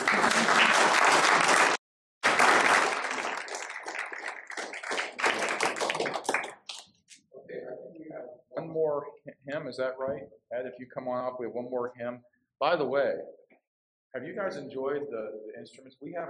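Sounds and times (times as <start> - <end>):
audience applause: 0.0 - 6.9
speech: 9.5 - 13.4, 14.1 - 16.2.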